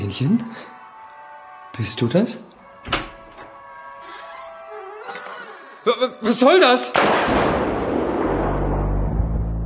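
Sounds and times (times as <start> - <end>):
speech: 0.0 - 0.8, 1.8 - 3.1, 5.8 - 7.6
gunshot: 7.0 - 9.5.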